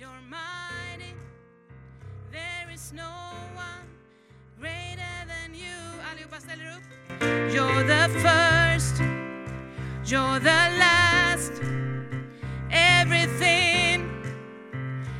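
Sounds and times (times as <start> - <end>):
soprano voice: 0.0 - 1.2, 2.4 - 4.0, 4.6 - 6.9, 7.5 - 9.2, 10.0 - 11.7, 12.6 - 14.3.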